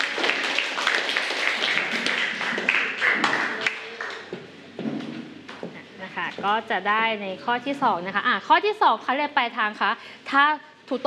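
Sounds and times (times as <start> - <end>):
people clapping: 0.0 - 5.6
speech: 6.3 - 11.0.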